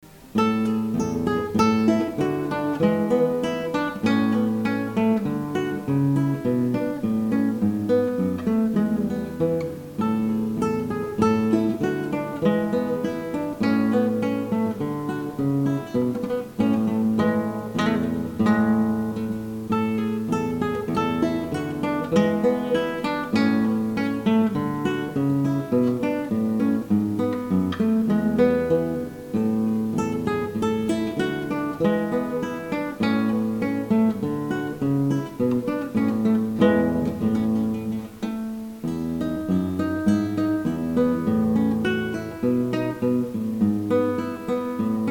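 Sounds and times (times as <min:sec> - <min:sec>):
gavotte: 0:00.0 - 0:45.0.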